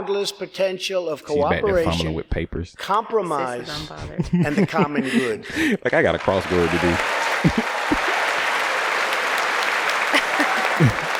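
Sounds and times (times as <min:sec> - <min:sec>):
speech: 0:00.1 - 0:07.7
laughter: 0:03.7 - 0:08.6, 0:09.9 - 0:11.1
crowd applause in a recorded speech: 0:06.0 - 0:11.1.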